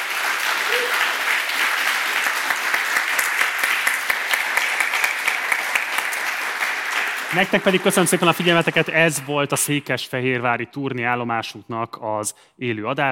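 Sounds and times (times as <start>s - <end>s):
audience applause: 0.0s - 9.5s
speech: 7.3s - 13.0s.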